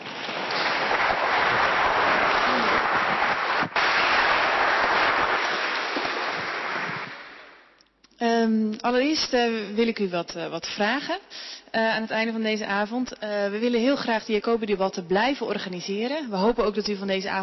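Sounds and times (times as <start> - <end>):
audience applause: 0.0 - 7.7
speech: 8.8 - 17.4.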